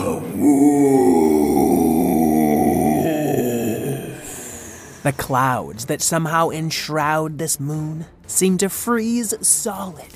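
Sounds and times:
giant furry creature's icy roar: 0.0 - 5.0
speech: 5.0 - 10.1.

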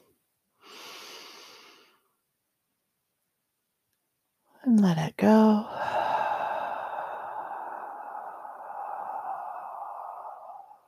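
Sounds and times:
person breathing in deeply during a guided breathing exercise: 0.6 - 2.0, 5.6 - 10.8
speech: 4.6 - 5.9.

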